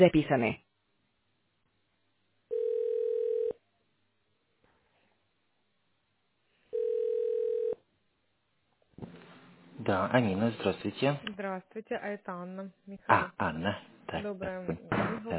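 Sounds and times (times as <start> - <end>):
speech: 0.0 - 0.7, 9.8 - 15.3
telephone ringback tone while waiting for operator: 2.5 - 3.6, 6.7 - 7.8.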